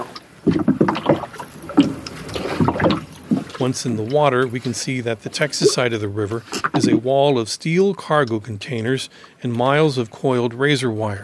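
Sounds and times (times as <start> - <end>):
kayak paddling on a river: 0.0 - 11.0
speech: 3.6 - 11.2.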